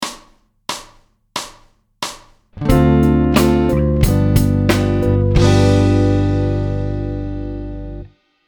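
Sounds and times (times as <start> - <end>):
musical chord: 2.6 - 8.1.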